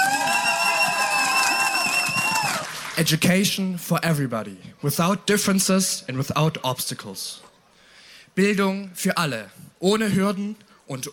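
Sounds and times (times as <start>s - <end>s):
audience applause: 0.0s - 3.2s
sustained high whistle-like tone: 0.2s - 2.5s
speech: 3.0s - 7.5s, 8.4s - 11.1s.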